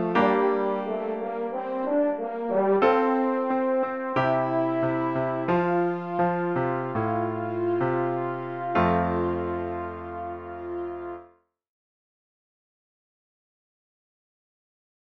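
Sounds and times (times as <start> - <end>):
French horn playing a hymn: 0.0 - 11.3
piano accompanying a hymn: 0.0 - 11.4.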